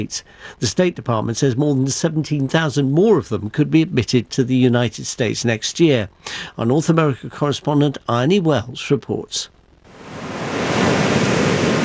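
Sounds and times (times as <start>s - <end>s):
speech: 0.0s - 9.6s
gentle ocean swell on a long sand beach at St Helena Bay, South Africa: 9.9s - 11.8s.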